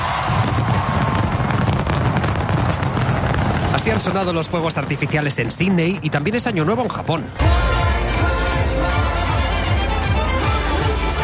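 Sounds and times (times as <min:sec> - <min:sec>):
New Year's crowd cheering in Tokyo: 0:00.0 - 0:03.7, 0:07.4 - 0:11.2
speech: 0:04.0 - 0:07.9.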